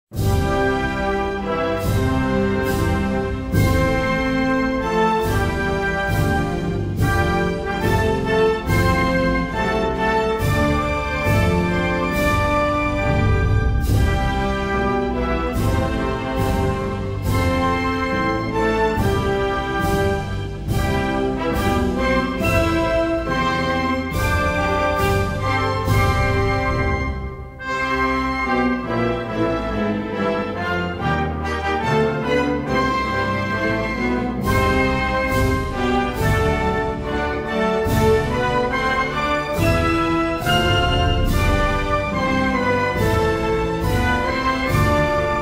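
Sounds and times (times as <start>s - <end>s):
national anthem: 0.2s - 45.3s.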